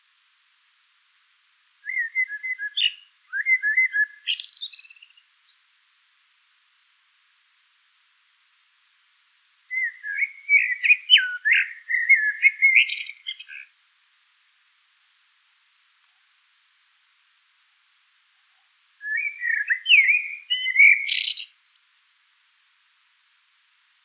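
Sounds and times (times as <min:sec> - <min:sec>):
Eurasian blackbird singing: 0:01.8 - 0:05.2, 0:09.7 - 0:13.7, 0:19.0 - 0:22.2.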